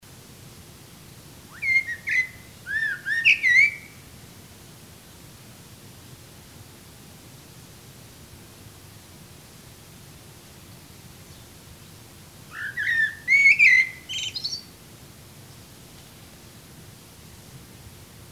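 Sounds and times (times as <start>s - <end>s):
background hiss: 0.0s - 18.2s
Eurasian blackbird singing: 1.5s - 4.0s, 12.5s - 14.7s.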